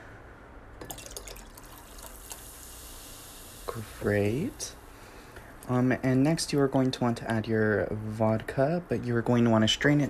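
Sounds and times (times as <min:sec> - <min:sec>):
cola poured into a glass of pomegranate juice: 0:00.8 - 0:04.0
speech: 0:03.7 - 0:04.8, 0:05.7 - 0:10.0.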